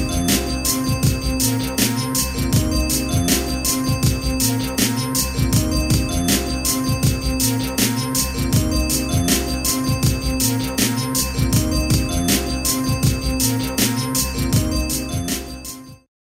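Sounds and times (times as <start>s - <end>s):
drums in Indian ethnic fusion music: 0.0s - 16.0s
sitar in Indian ethnic fusion music: 0.0s - 16.0s.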